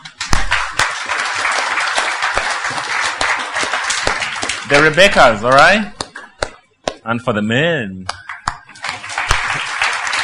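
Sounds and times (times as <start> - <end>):
audience clapping: 0.0 - 7.0, 8.1 - 10.2
speech: 4.7 - 6.0, 7.0 - 8.2.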